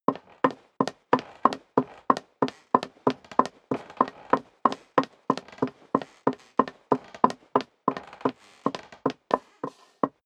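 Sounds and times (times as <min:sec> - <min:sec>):
high heel footsteps running on creaking wood: 0:00.1 - 0:10.2
wood creaking: 0:00.1 - 0:10.2.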